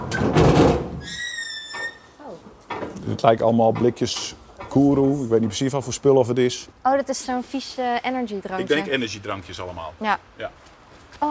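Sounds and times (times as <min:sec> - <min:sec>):
heavy sealed metal container door pulled open by its levers: 0:00.0 - 0:02.2
speech: 0:03.2 - 0:11.3.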